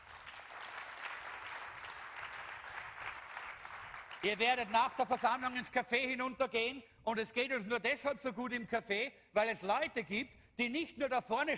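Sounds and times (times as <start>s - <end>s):
audience applause: 0.0s - 5.4s
speech: 4.2s - 11.5s.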